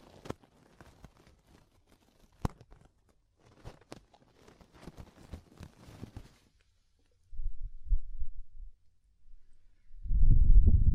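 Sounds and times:
ear cleaning clicks and scratchy rustles: 0.0 - 6.7.

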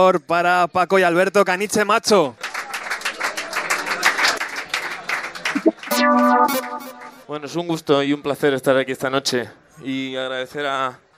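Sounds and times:
speech: 0.0 - 2.5, 7.3 - 11.0
audience applause: 2.4 - 5.6.

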